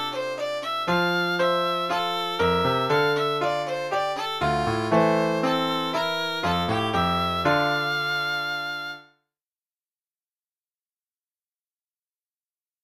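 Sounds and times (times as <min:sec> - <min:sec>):
piano: 0:00.0 - 0:09.2.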